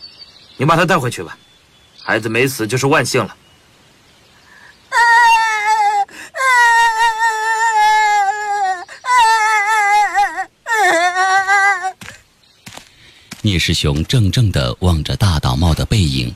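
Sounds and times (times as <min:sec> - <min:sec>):
speech: 0:00.6 - 0:01.5, 0:02.1 - 0:03.4, 0:13.6 - 0:16.3
child crying and wailing while being dragged away: 0:04.9 - 0:12.2.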